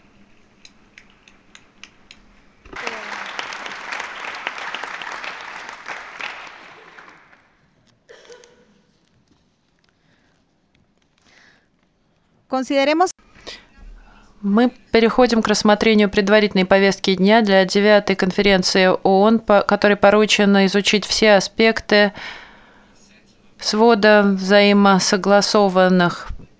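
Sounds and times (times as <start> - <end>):
crowd clapping in a conference hall: 2.7 - 7.7
speech: 12.5 - 13.1, 14.4 - 22.4, 23.6 - 26.4.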